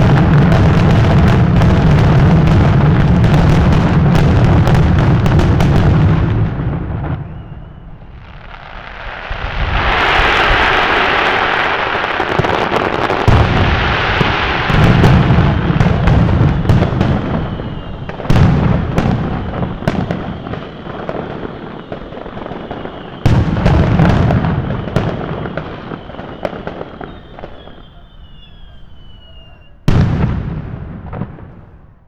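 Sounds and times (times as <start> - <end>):
firecracker string and fireworks: 0.0 - 32.0.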